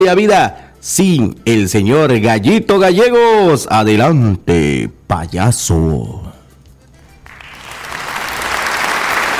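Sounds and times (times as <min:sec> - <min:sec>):
speech: 0:00.1 - 0:06.3
crowd applause sound effect: 0:07.3 - 0:09.3.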